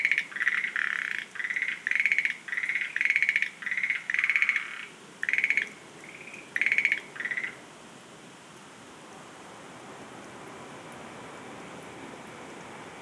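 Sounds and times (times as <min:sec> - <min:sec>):
Schlegel's green tree frog trilling: 0:00.0 - 0:07.6.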